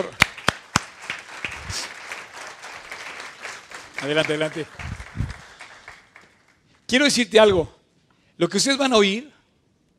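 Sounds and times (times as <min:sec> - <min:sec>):
speech: 0:00.0 - 0:00.2, 0:04.0 - 0:04.9, 0:06.9 - 0:07.8, 0:08.4 - 0:09.4
audience applause: 0:00.0 - 0:06.6.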